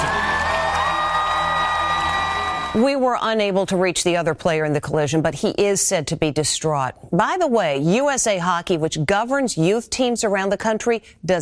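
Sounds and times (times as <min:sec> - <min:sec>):
arena crowd cheering: 0:00.0 - 0:03.0
speech: 0:02.8 - 0:11.3.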